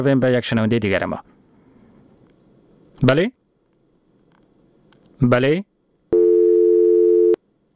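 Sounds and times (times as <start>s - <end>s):
speech: 0.0s - 1.3s, 3.0s - 3.4s, 5.2s - 5.7s
telephone busy signal after a radio listener's call dropped: 6.1s - 7.4s.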